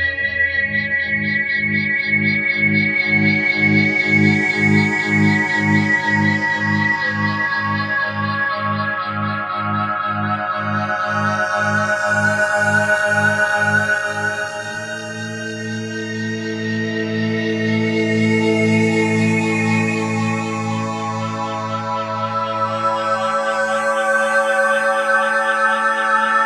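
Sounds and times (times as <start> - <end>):
synth pads: 0.0 - 26.4.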